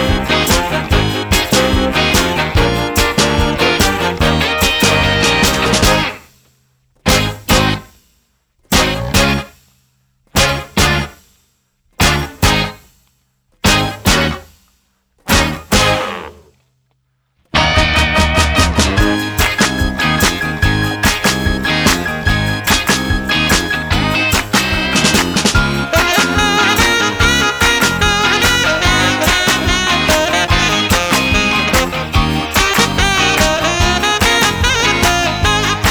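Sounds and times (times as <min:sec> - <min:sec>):
musical accompaniment: 0:00.0 - 0:06.2, 0:07.1 - 0:07.9, 0:08.7 - 0:09.5, 0:10.4 - 0:11.2, 0:13.7 - 0:14.4, 0:15.3 - 0:16.2, 0:17.6 - 0:35.8.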